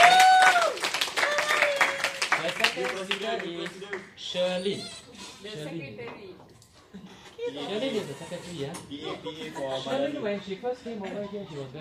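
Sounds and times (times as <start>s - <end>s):
audience applause for a speaker at a speaking club meeting: 0.0s - 4.2s
speech: 3.0s - 11.7s
laughter: 6.9s - 11.7s.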